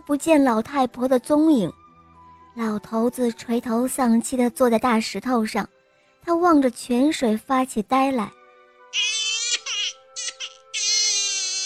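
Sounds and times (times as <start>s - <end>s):
speech: 0.1s - 1.8s, 2.6s - 9.2s
baby crying: 8.9s - 11.6s.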